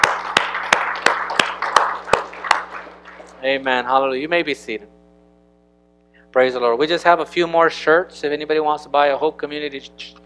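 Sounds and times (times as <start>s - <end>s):
audience clapping: 0.0s - 3.9s
speech: 3.4s - 5.0s, 6.3s - 10.2s.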